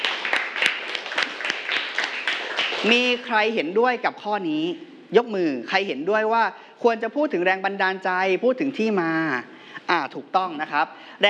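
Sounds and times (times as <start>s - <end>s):
classmates clapping for a fellow student in a class: 0.0s - 3.3s
speech: 2.8s - 11.2s.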